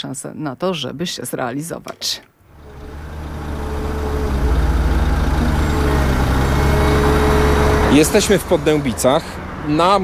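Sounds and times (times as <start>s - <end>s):
speech: 0.0s - 2.4s, 7.9s - 10.0s
construction machinery working: 1.9s - 10.0s.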